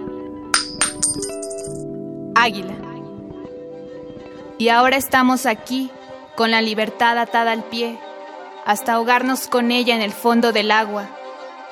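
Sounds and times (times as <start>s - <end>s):
tossed coin clinking: 0.6s - 1.8s
speech: 2.4s - 2.8s, 4.6s - 8.0s, 8.7s - 11.2s.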